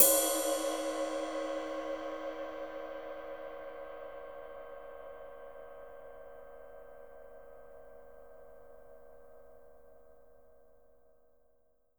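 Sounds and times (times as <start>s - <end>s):
ride cymbal on a drum kit: 0.0s - 3.2s.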